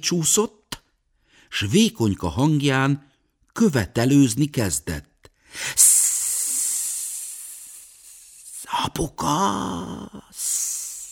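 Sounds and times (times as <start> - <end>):
speech: 0.0 - 0.6, 1.5 - 5.9, 8.9 - 10.6
baby water snake hissing: 5.7 - 8.8, 9.9 - 11.1.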